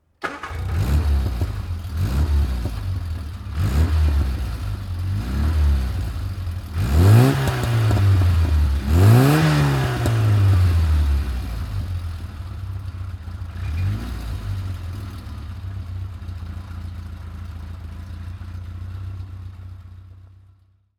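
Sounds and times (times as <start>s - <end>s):
Innocenti Mini De Tomaso car: 0.2s - 20.9s.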